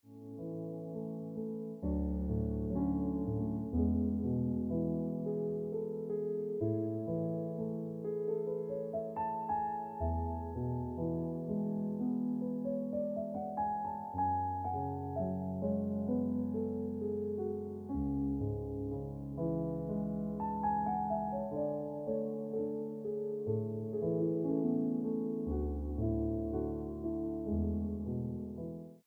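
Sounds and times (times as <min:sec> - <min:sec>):
piano ringtone music: 0:00.1 - 0:28.9.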